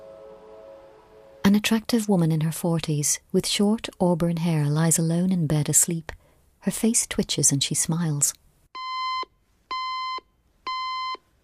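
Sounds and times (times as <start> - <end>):
speech: 1.6 - 8.4
alarm clock beeping on a bedside cabinet: 8.8 - 11.2.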